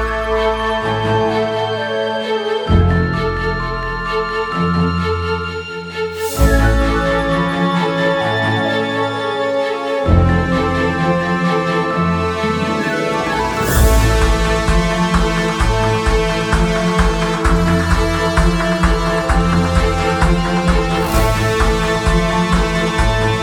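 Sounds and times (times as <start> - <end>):
news bed music: 0.0 - 23.4.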